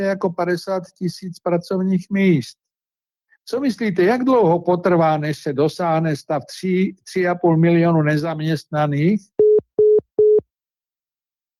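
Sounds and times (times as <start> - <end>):
speech: 0.0 - 2.6, 3.5 - 9.4
telephone line tone after a dropped call: 9.4 - 10.4.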